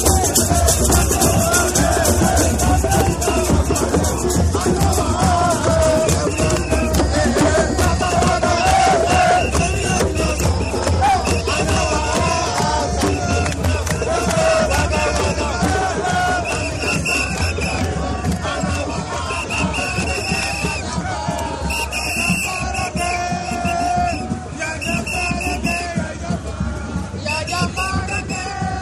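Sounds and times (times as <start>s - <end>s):
drums at an anti-racist demonstration: 0.0s - 28.8s
people shouting at an anti-racist demonstration: 0.0s - 28.8s
whistles at an anti-racist demonstration: 6.0s - 7.2s, 8.5s - 12.2s, 16.3s - 18.0s, 19.3s - 21.0s, 21.6s - 26.0s, 27.2s - 28.6s.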